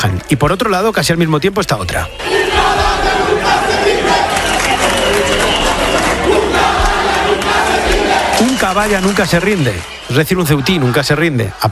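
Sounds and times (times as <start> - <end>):
speech: 0.3 - 2.4, 8.4 - 11.6
large crowd cheering a president: 2.1 - 11.6
applause: 4.1 - 11.6.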